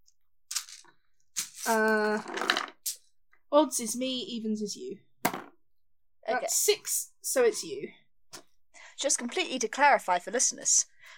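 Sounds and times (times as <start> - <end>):
speech: 1.6 - 2.5, 3.5 - 5.1, 6.3 - 8.4, 9.0 - 11.1
die rolling: 2.1 - 2.8.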